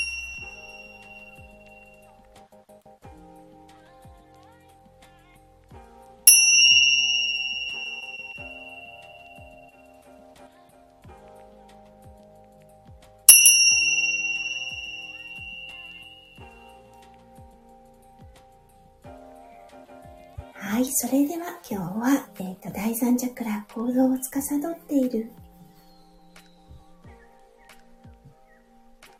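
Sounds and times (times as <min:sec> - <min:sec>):
high-pitched tingsha bells ringing: 0:00.0 - 0:02.1, 0:06.3 - 0:10.0, 0:13.3 - 0:16.8
soft low music: 0:00.0 - 0:29.1
speech: 0:20.8 - 0:25.4.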